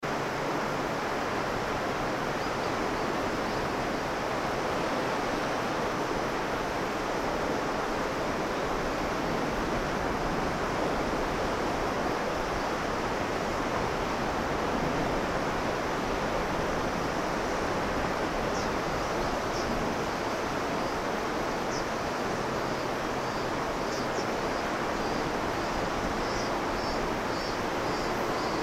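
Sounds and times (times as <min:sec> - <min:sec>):
river: 0:00.0 - 0:28.6.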